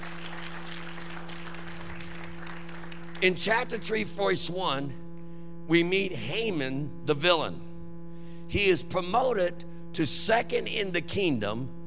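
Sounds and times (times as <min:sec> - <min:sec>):
audience hand clapping: 0:00.0 - 0:03.6
speech: 0:03.2 - 0:05.0, 0:05.7 - 0:07.7, 0:08.5 - 0:11.8.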